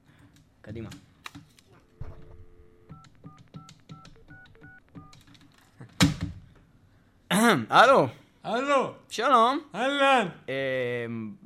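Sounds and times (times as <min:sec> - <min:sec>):
speech: 0:00.6 - 0:01.1, 0:07.5 - 0:11.4
touch-tone telephone dialing as a radio show host calls a listener: 0:02.8 - 0:05.3.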